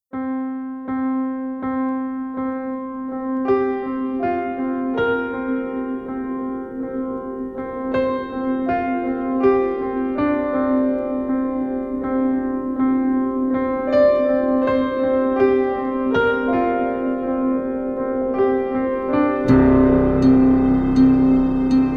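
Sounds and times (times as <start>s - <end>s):
piano with less echo: 0.0s - 21.9s.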